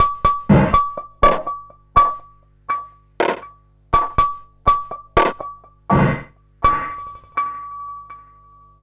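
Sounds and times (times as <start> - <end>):
EAST percussion drum loop: 0.0 - 2.3, 3.2 - 7.4.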